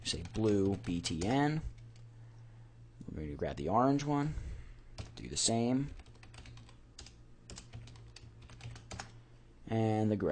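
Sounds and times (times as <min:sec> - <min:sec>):
typing on a computer keyboard: 0:00.0 - 0:02.0, 0:05.0 - 0:09.2
low steady hum: 0:00.0 - 0:10.3
speech: 0:00.1 - 0:01.7, 0:03.1 - 0:04.5, 0:05.2 - 0:06.0, 0:09.7 - 0:10.3.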